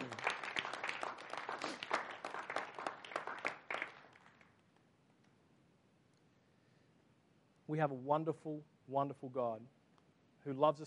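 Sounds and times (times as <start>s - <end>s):
audience round of applause: 0.0s - 4.6s
speech: 7.7s - 9.8s, 10.4s - 10.8s.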